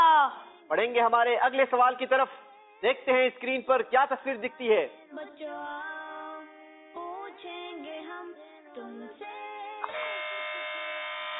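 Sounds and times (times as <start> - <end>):
speech: 0.7 - 6.0
electric quiz buzzer being pressed: 9.8 - 11.3.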